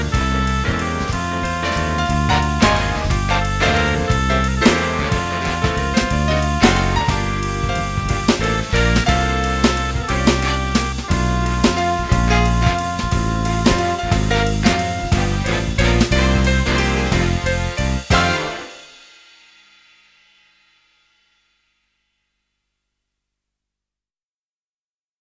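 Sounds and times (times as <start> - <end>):
instrumental music: 0.0 - 19.5.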